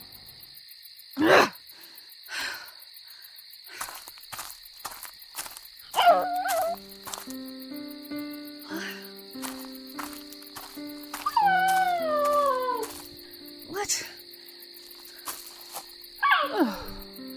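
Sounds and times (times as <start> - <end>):
chirring insect-like hum: 0.0 - 17.3
golden retriever whimpering: 6.0 - 6.8, 11.2 - 12.8.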